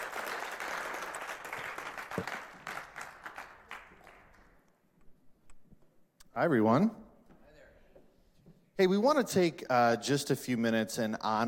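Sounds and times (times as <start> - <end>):
crowd applause: 0.0 - 4.5
speech: 2.2 - 2.4, 6.4 - 7.0, 8.8 - 11.4.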